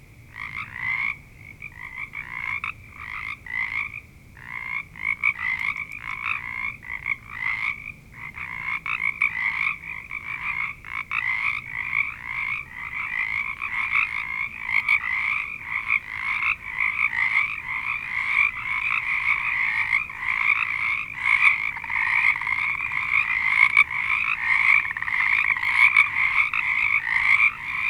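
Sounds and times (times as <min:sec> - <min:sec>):
frog chorus of high trilled notes: 0:00.0 - 0:27.8.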